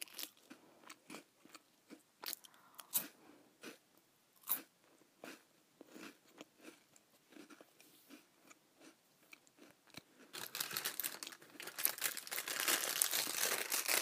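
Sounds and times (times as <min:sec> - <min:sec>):
crackers being eaten, crunching: 0:00.0 - 0:03.8, 0:04.4 - 0:14.0
dense continuous crinkling and rustling: 0:10.3 - 0:14.0.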